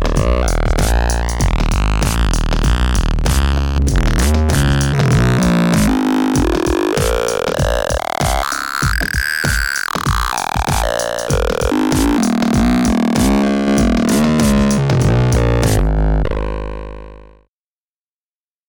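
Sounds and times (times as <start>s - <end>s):
wooden bass: 0.0s - 17.4s.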